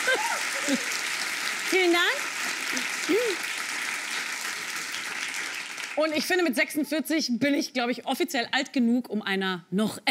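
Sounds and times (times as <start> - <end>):
audience applause: 0.0 - 6.4
speech: 0.2 - 1.0, 1.7 - 3.5, 6.0 - 10.1.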